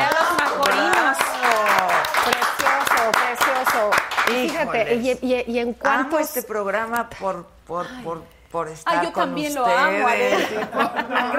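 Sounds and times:
audience applause after guitar performance: 0.0s - 4.5s
speech: 4.8s - 11.3s
laughter: 10.0s - 11.3s.

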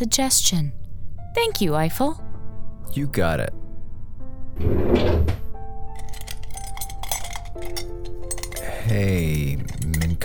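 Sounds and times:
speech: 0.0s - 2.3s, 2.9s - 3.6s, 4.6s - 5.4s, 8.9s - 10.2s
drawer sliding open and shut: 4.6s - 10.2s
items clinking and knocking: 6.0s - 10.2s.

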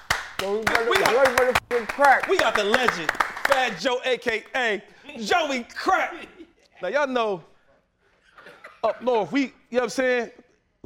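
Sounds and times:
applause, hands clapping: 0.0s - 4.6s
speech: 0.4s - 7.5s, 8.8s - 10.8s.

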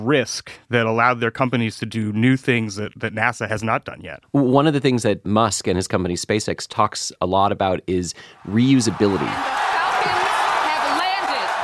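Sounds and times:
speech: 0.0s - 10.2s
crowd cheering rocket booster landing: 8.2s - 11.6s
high whoops: 9.0s - 11.6s.

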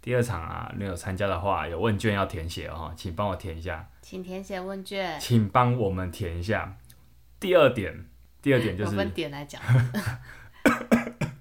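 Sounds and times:
speech: 0.0s - 6.8s, 7.4s - 10.8s
person coughing while laughing: 10.6s - 11.3s.

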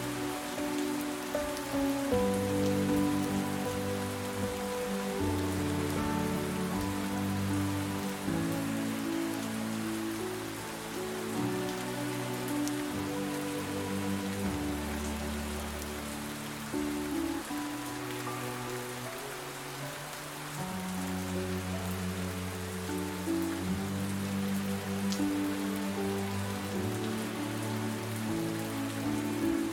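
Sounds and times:
heavy rain on a surface: 0.0s - 29.7s
slow calm music with low notes and soft chords: 0.0s - 29.7s.

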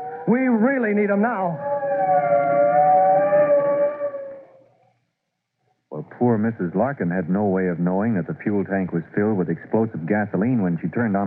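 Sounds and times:
fire truck siren: 0.0s - 4.6s
speech: 0.3s - 1.7s, 6.2s - 11.2s.

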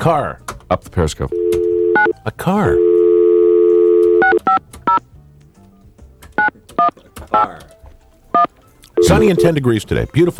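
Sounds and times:
speech: 0.0s - 1.6s, 2.2s - 2.9s, 6.8s - 7.8s, 9.1s - 10.3s
touch-tone keypad beeps dialing a number: 1.3s - 2.2s, 2.8s - 5.0s, 8.4s - 9.6s
telephone dial tone: 1.3s - 4.6s, 8.4s - 9.5s.

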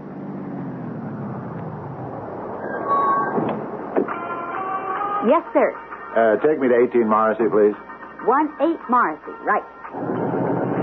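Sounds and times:
taxi car engine droning as it pulls up after being hailed: 0.0s - 5.2s
speech: 5.2s - 10.1s.

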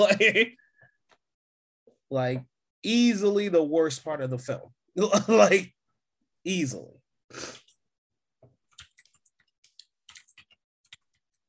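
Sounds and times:
speech: 0.0s - 0.6s, 2.1s - 5.8s, 6.4s - 7.6s
typing on a computer keyboard: 8.6s - 11.4s.

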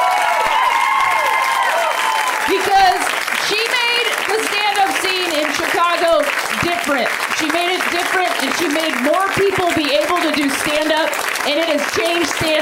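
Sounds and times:
whoops and cheers: 0.0s - 3.1s
crowd clapping: 0.0s - 12.6s
speech: 7.0s - 12.6s.

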